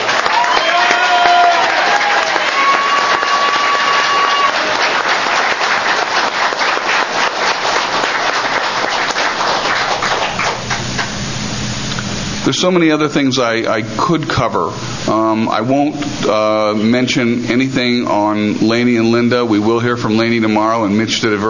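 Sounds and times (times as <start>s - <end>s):
audience applause: 0.0s - 11.2s
speech: 12.5s - 21.4s.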